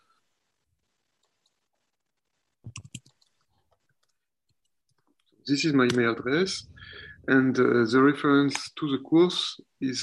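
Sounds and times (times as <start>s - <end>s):
keyboard typing an email address into an online chat: 2.6s - 5.2s
speech: 5.5s - 10.0s.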